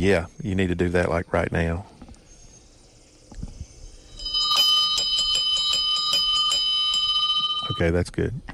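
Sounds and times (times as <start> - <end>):
speech: 0.0 - 1.9, 7.8 - 8.5
bell ringing for the time check: 4.0 - 8.0.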